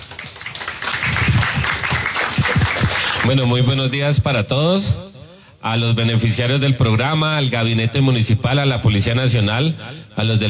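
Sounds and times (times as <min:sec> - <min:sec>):
audience applause welcoming the mayor: 0:00.0 - 0:03.5
speech: 0:03.3 - 0:10.4.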